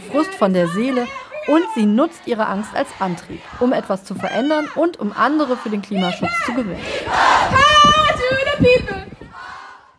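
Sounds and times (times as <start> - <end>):
Fridays for Future climate protesters shouting: 0.0 - 9.9
speech: 0.2 - 9.2.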